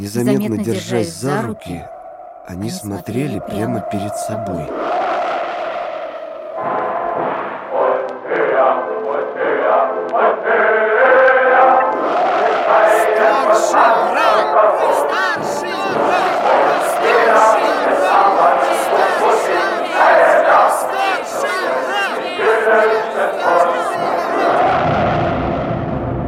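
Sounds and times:
speech: 0:00.0 - 0:04.9
rising yells breaking through crowd: 0:01.5 - 0:26.1
dense crowd shouting together: 0:06.6 - 0:25.6.

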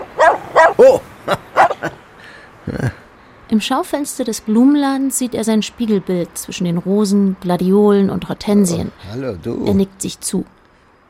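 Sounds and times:
dog barking: 0:00.0 - 0:01.9
speech: 0:00.8 - 0:01.5, 0:03.6 - 0:10.6.

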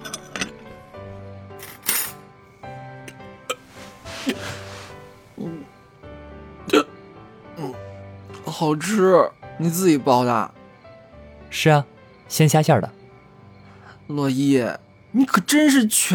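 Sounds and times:
satisfied burp after a big meal: 0:06.7 - 0:06.9
speech: 0:08.6 - 0:10.6, 0:11.5 - 0:13.0, 0:14.1 - 0:16.1.

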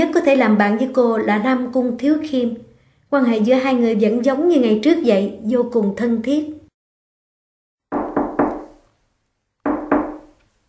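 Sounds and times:
speech: 0:00.0 - 0:06.6
knocking on a door: 0:07.9 - 0:08.8, 0:09.6 - 0:10.4.

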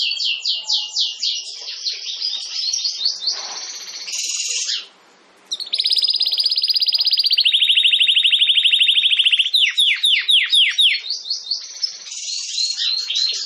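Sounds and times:
domestic canary trilling song: 0:00.0 - 0:13.4.

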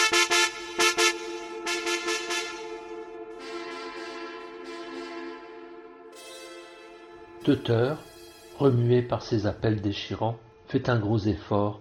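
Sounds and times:
distant car horn honking frantically: 0:00.0 - 0:08.1
speech: 0:07.4 - 0:11.7.

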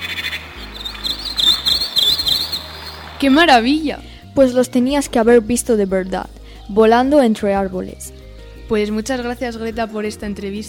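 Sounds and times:
birdsong played back from an old cassette: 0:00.0 - 0:03.4
speech: 0:03.2 - 0:10.6.

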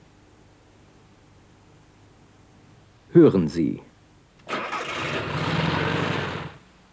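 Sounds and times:
speech: 0:03.2 - 0:03.9
car engine starting: 0:04.4 - 0:06.6.

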